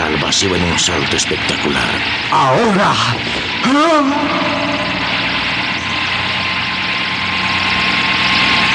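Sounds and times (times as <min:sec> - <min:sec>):
helicopter flying overhead: 0:00.0 - 0:08.7
speech: 0:00.3 - 0:05.1
rising and falling pitched cry: 0:02.4 - 0:06.4.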